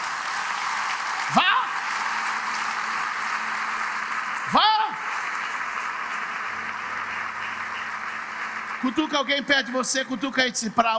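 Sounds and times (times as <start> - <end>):
audience applauding: 0.0 - 10.9
speech: 9.0 - 10.9.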